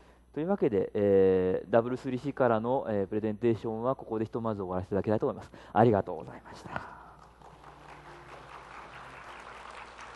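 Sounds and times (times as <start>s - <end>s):
speech: 0.4s - 7.0s
audience applause: 7.2s - 10.1s.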